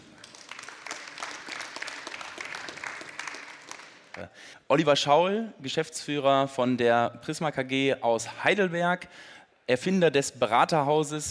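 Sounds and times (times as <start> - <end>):
audience applause: 0.0 - 4.3
speech: 4.2 - 11.2.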